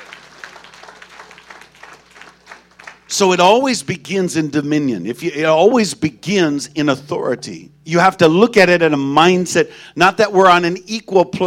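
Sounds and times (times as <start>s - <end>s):
audience clapping hands: 0.0s - 3.4s
speech: 3.1s - 11.4s.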